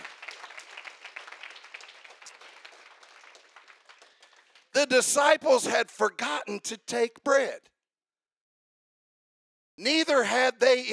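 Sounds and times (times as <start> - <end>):
audience clapping: 0.0 - 5.3
speech: 4.8 - 7.7, 9.8 - 10.9.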